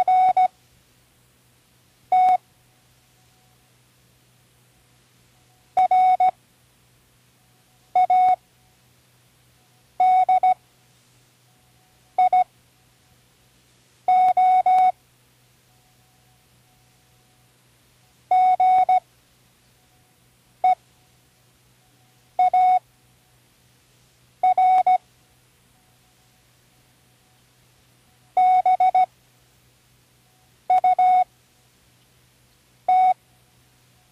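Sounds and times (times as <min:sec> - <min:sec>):
Morse code spelling words: 0:00.0 - 0:00.5, 0:02.1 - 0:02.4, 0:05.4 - 0:06.4, 0:08.0 - 0:08.4, 0:10.0 - 0:10.6, 0:12.2 - 0:12.5, 0:14.1 - 0:15.0, 0:18.3 - 0:19.0, 0:22.0 - 0:22.8, 0:24.4 - 0:25.0, 0:28.3 - 0:29.1, 0:30.7 - 0:31.3, 0:32.9 - 0:33.2.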